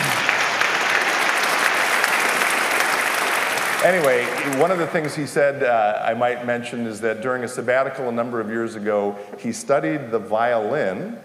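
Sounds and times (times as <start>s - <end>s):
audience applause: 0.0s - 5.5s
speech: 3.8s - 11.2s.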